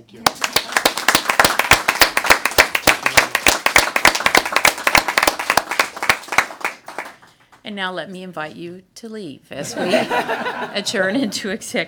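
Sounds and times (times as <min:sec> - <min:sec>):
speech: 0:00.1 - 0:00.9, 0:07.7 - 0:11.8
small crowd applause: 0:00.2 - 0:07.4
laughter: 0:09.6 - 0:11.4.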